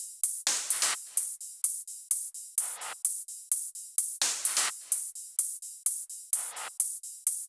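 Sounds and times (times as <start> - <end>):
drum kit at 128 BPM: 0.4 - 1.4, 4.0 - 7.4.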